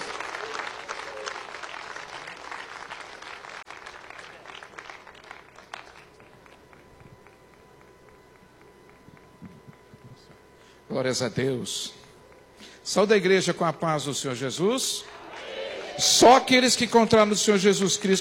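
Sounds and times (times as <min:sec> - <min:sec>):
audience applauding: 0:00.0 - 0:10.0, 0:15.0 - 0:17.6
speech: 0:10.9 - 0:12.0, 0:12.9 - 0:15.2, 0:16.0 - 0:18.1.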